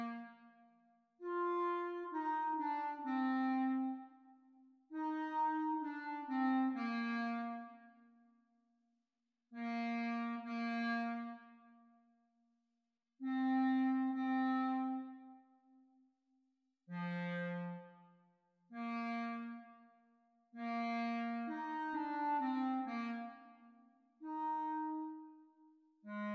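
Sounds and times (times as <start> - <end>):
clarinet duet: 0.0 - 0.5, 1.2 - 8.0, 9.6 - 11.7, 13.2 - 15.5, 16.9 - 18.0, 18.8 - 19.8, 20.5 - 26.3.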